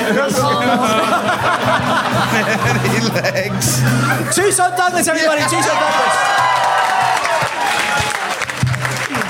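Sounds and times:
laughter: 0.1 - 4.6
speech: 0.1 - 6.5
faint cheers and voices: 5.2 - 9.2
large audience applause: 5.4 - 9.2.

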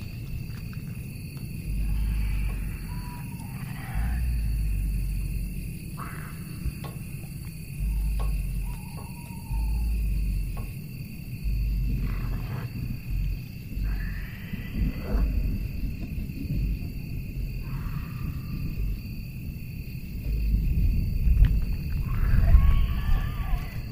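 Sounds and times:
deep growling rumble: 0.0 - 23.9
gliding animal-like cries: 1.8 - 5.0, 7.8 - 10.7, 13.8 - 15.4, 22.0 - 23.9.

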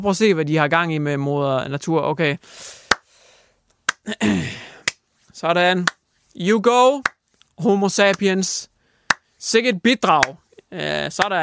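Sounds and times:
speech: 0.0 - 2.8, 4.0 - 4.7, 5.4 - 8.7, 9.4 - 11.4
slow ironic golf clap: 2.9 - 3.1, 9.1 - 9.3, 10.2 - 10.4.

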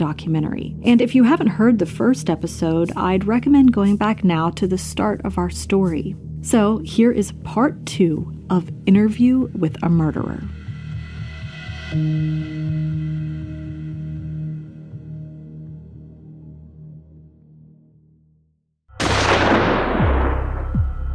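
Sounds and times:
speech: 0.0 - 10.6, 11.9 - 13.1
shotgun discharged in an enclosed area: 19.0 - 21.0.

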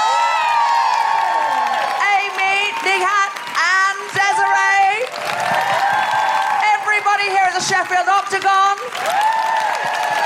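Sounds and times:
live audience applause and cheering: 0.0 - 10.2.

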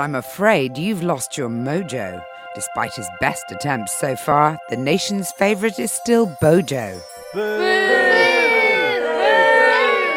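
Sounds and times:
speech: 0.0 - 7.9
crowd booing: 7.4 - 10.1.

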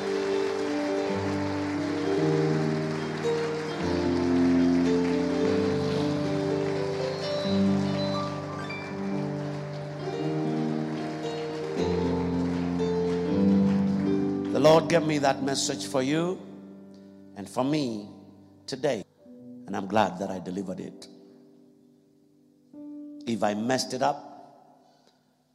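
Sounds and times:
audience hand clapping: 0.0 - 15.5
speech: 14.7 - 16.5, 17.5 - 19.0, 19.7 - 21.1, 23.2 - 24.3.

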